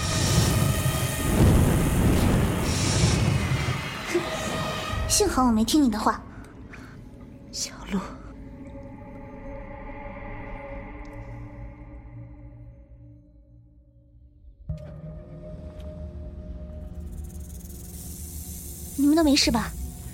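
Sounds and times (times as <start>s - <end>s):
snakes hissing: 0.0s - 5.0s, 16.8s - 20.1s
speech: 5.2s - 6.3s, 7.6s - 8.2s, 19.2s - 19.8s.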